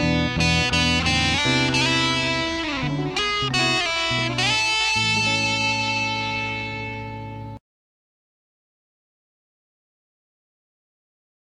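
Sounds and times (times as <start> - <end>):
choro music: 0.0 - 7.6.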